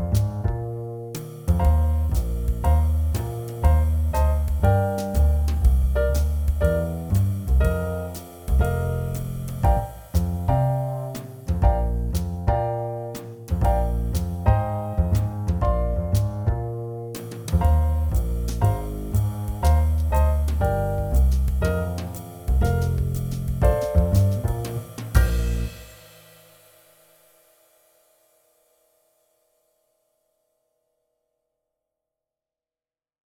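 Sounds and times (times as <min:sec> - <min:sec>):
play-along Christmas song backing track: 0:00.0 - 0:26.2.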